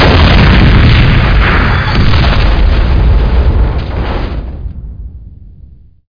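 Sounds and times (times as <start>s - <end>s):
large explosion: 0.0s - 6.0s.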